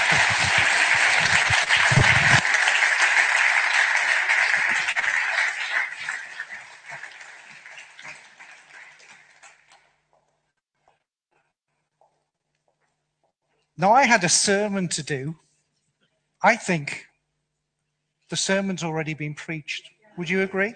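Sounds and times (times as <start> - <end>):
audience applause: 0.0 - 9.9
speech: 13.8 - 15.4, 16.4 - 17.1, 18.3 - 20.7.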